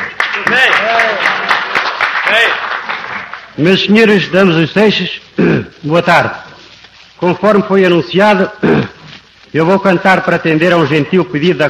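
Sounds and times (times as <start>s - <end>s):
crowd applauding: 0.0s - 3.9s
speech: 2.3s - 2.6s, 3.6s - 6.4s, 7.2s - 11.6s.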